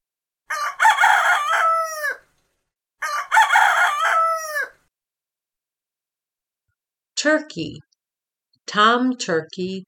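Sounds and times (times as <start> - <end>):
rooster crowing: 0.5 - 2.3, 3.0 - 4.9
speech: 7.2 - 7.9, 8.7 - 9.8.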